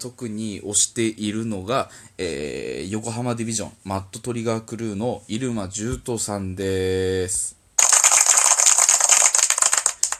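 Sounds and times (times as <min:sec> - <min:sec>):
speech: 0:00.0 - 0:07.6
applause sound effect from a button: 0:07.8 - 0:10.1.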